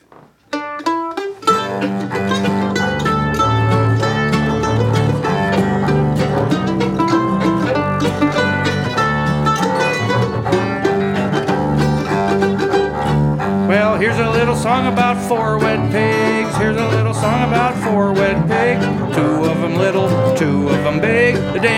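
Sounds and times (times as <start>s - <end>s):
music in the key of G: 0.0s - 21.7s.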